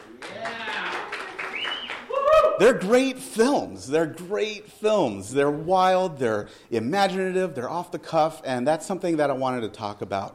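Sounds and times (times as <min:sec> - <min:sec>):
audience clapping: 0:00.0 - 0:02.7
speech: 0:02.6 - 0:10.3.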